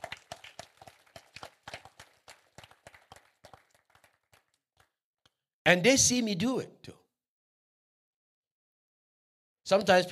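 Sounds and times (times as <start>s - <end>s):
audience clapping: 0.0s - 5.0s
speech: 5.7s - 7.0s, 9.7s - 10.1s.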